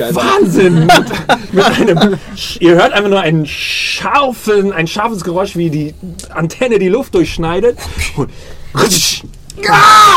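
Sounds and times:
laughter: 0.0 - 3.2
speech: 0.0 - 10.1
loud scream: 9.6 - 10.1.

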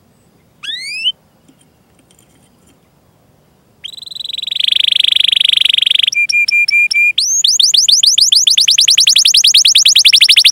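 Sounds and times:
canary singing: 0.6 - 1.2, 3.8 - 10.4.

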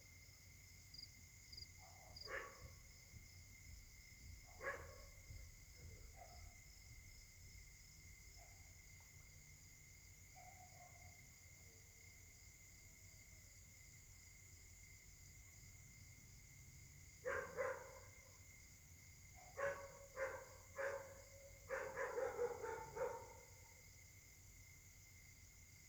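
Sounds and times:
dog barking: 1.8 - 2.9, 4.4 - 5.3, 6.0 - 6.6, 8.4 - 8.8, 10.3 - 11.2, 17.2 - 18.4, 19.3 - 23.8.

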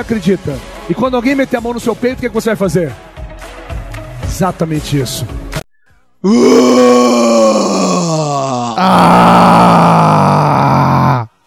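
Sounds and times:
speech: 0.0 - 3.0, 4.3 - 5.4, 6.2 - 7.0, 8.4 - 9.9
loud male scream: 6.3 - 11.3.

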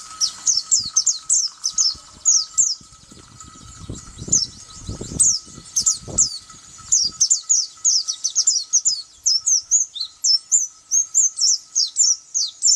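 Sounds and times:
white-eye chirping and twittering: 0.0 - 12.7.

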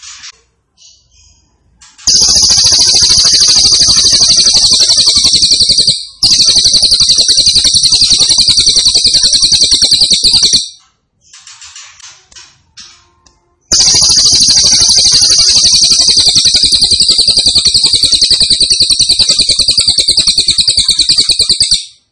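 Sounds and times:
grey-cheeked tit-babbler singing buzzing trills: 2.1 - 10.6, 13.7 - 21.7.

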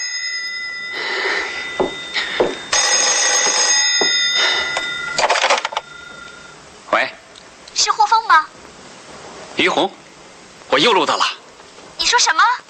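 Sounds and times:
telephone ringing: 0.0 - 6.6
speech: 9.6 - 10.0, 10.8 - 11.4, 12.1 - 12.6.

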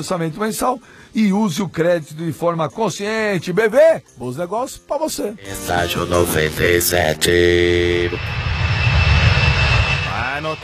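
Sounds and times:
speech: 0.0 - 8.6, 10.4 - 10.6
airplane engine: 6.0 - 10.6.

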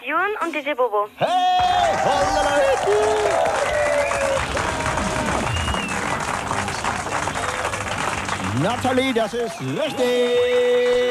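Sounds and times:
speech: 0.2 - 4.6, 8.6 - 11.0
applause: 1.6 - 11.0.

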